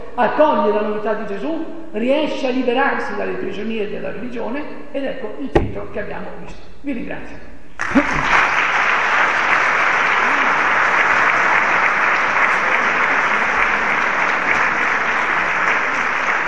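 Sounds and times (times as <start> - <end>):
speech: 0.2 - 8.2
audience applause: 7.8 - 16.4.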